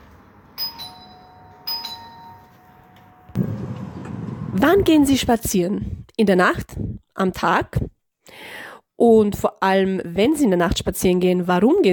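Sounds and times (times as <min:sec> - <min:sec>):
doorbell chime ringing: 0:00.6 - 0:02.9
speech: 0:04.6 - 0:11.9.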